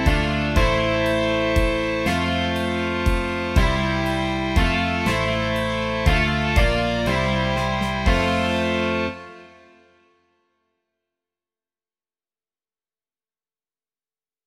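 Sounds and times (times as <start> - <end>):
rock music: 0.0 - 9.6.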